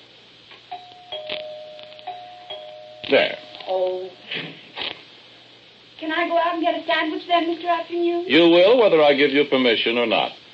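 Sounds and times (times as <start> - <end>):
doorbell chiming: 0.7 - 4.2
speech: 3.1 - 4.6, 6.1 - 10.4.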